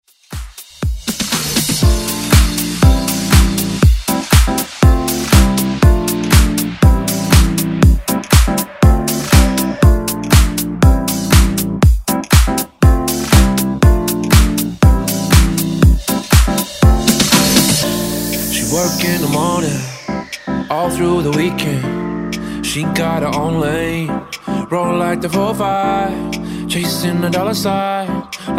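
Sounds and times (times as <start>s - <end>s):
extended dance track: 0.1s - 28.5s.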